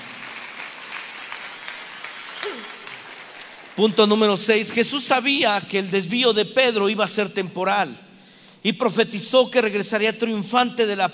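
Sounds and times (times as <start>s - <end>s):
audience applause: 0.0s - 3.8s
vocal whoop: 2.2s - 3.1s
speech: 3.8s - 11.1s.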